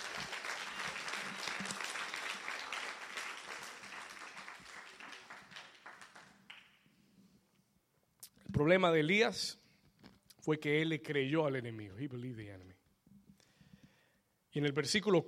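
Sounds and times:
loud audience applause: 0.0 - 6.8
speech: 8.6 - 9.6, 10.4 - 12.8, 14.6 - 15.2.

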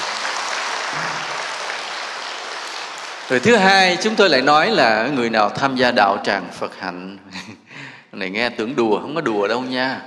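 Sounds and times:
applause at a Vietnamese Buddhist gathering honoring elders: 0.0 - 4.4
speech: 3.3 - 10.0.

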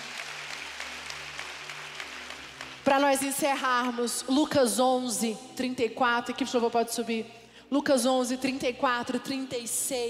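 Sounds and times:
crowd applause: 0.0 - 2.9
speech: 2.8 - 10.0.

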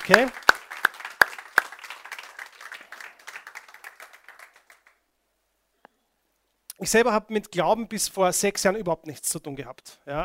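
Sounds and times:
audience applause: 0.0 - 5.0
speech: 0.1 - 0.4, 6.8 - 10.2.

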